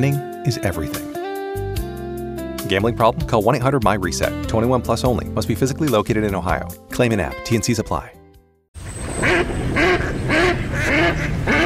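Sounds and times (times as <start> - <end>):
speech: 0.0 - 1.2, 2.7 - 8.2
duck quacking: 9.2 - 11.6.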